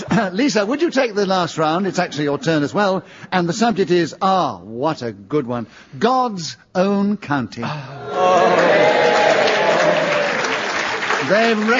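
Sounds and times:
speech: 0.1 - 9.1, 11.2 - 11.7
front row audience clapping: 8.2 - 11.7.

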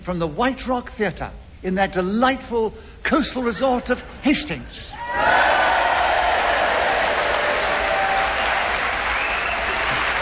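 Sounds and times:
speech: 0.0 - 5.6
large theatre audience applauding: 5.2 - 10.1.

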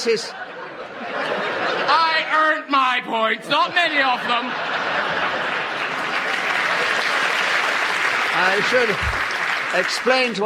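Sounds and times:
speech: 0.0 - 1.3, 1.9 - 5.5, 8.4 - 10.4
laughter: 0.0 - 10.4
audience applause: 4.8 - 10.4.

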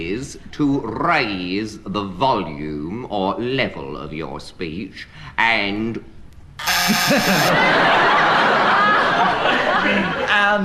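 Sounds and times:
speech: 0.0 - 8.6, 9.5 - 10.6
game show buzzer: 6.6 - 7.6
laughter: 6.7 - 10.6.

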